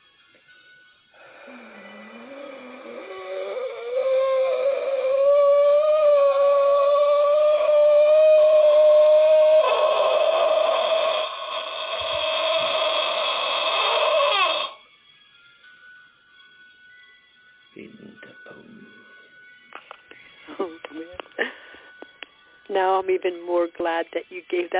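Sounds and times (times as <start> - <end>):
blood-curdling shriek: 1.2 - 14.8
speech: 23.1 - 24.7.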